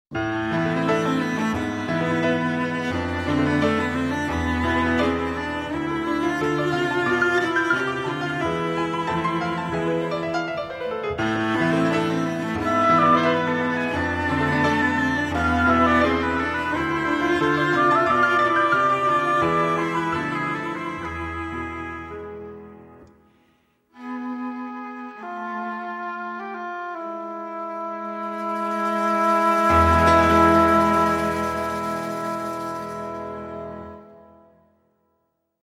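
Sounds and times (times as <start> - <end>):
instrumental music: 0.1 - 35.5.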